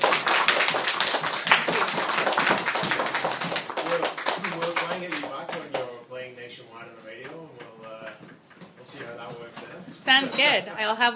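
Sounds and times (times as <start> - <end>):
round of applause from a group: 0.0 - 5.9
speech: 10.2 - 11.1.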